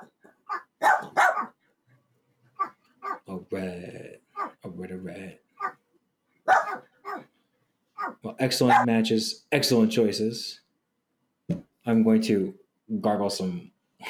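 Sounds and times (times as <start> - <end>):
dog barking: 0.5 - 1.6, 2.6 - 3.2, 6.5 - 7.3, 8.0 - 8.9
speech: 3.5 - 4.0, 8.4 - 10.6, 11.9 - 14.0.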